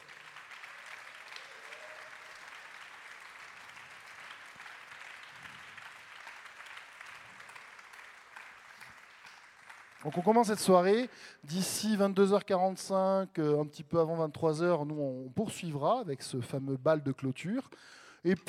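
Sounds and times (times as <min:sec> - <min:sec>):
audience applauding loudly: 0:00.0 - 0:11.3
speech: 0:10.0 - 0:18.4.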